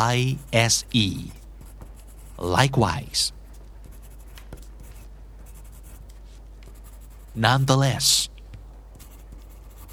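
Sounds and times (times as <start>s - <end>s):
speech: 0.0s - 1.4s, 2.4s - 3.4s, 7.4s - 8.3s
pencil scratching and flicking across paper: 1.4s - 2.4s, 3.8s - 6.0s, 6.7s - 7.4s, 8.9s - 9.9s.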